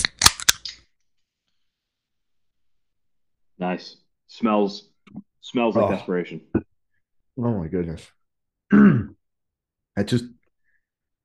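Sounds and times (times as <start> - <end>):
beer can cracking open: 0.0 - 0.8
speech: 3.6 - 6.7, 7.4 - 9.1, 10.0 - 10.4.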